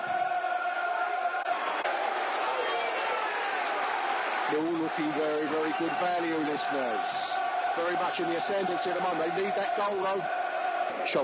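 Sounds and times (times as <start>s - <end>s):
football stadium crowd reacting: 0.0s - 11.2s
speech: 4.5s - 11.2s.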